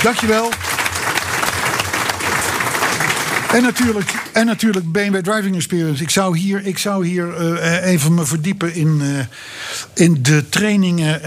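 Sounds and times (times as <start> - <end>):
speech: 0.0 - 0.7, 3.5 - 11.2
crowd applause: 0.0 - 4.6.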